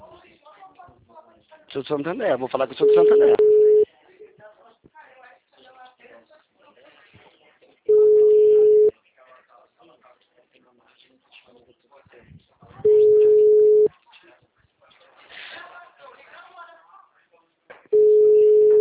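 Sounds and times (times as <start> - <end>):
speech: 1.7 - 3.4
ringback tone of an outgoing telephone call: 2.8 - 3.8, 7.9 - 8.9, 12.9 - 13.9, 18.0 - 18.7.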